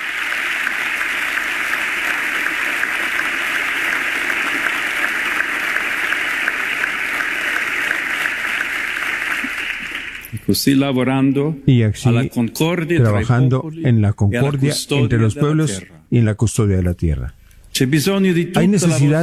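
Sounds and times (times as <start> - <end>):
audience ovation: 0.0 - 10.9
speech: 10.5 - 19.2.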